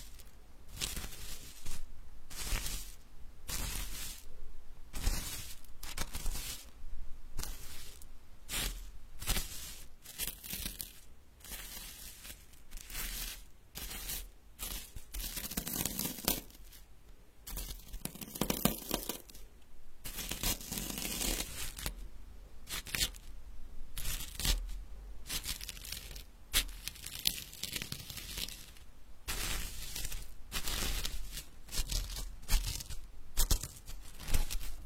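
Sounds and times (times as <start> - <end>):
medicinal herbs being ground: 0.0 - 4.3, 4.9 - 6.8, 7.4 - 16.8, 17.5 - 21.9, 22.6 - 23.3, 24.0 - 34.8.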